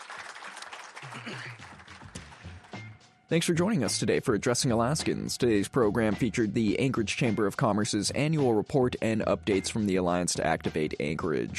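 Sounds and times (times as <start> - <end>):
audience applause: 0.0 - 2.8
speech: 1.0 - 1.8, 3.3 - 11.5.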